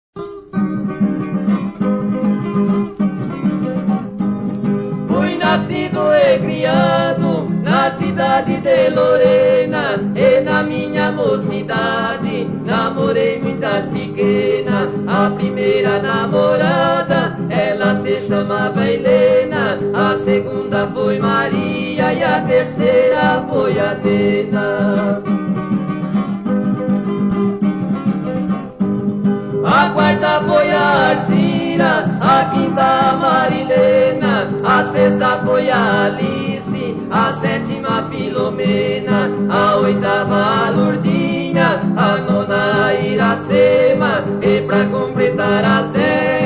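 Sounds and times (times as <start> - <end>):
classic sertanejo music: 0.2 - 46.4.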